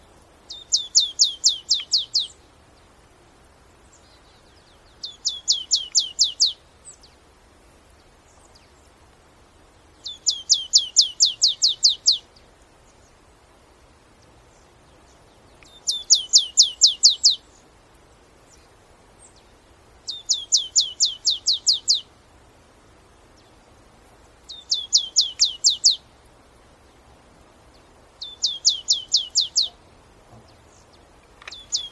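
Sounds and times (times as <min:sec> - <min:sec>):
marsh tit calling: 0:00.5 - 0:02.4, 0:05.0 - 0:06.6, 0:10.0 - 0:12.2, 0:15.5 - 0:17.4, 0:20.1 - 0:22.1, 0:24.5 - 0:26.0, 0:28.2 - 0:31.8.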